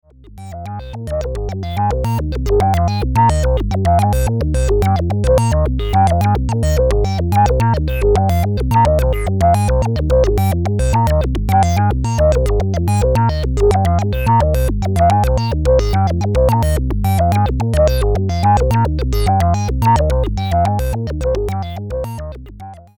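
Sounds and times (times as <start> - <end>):
Cwejman S1 synthesizer played from a MIDI controller: 0.0 - 22.9.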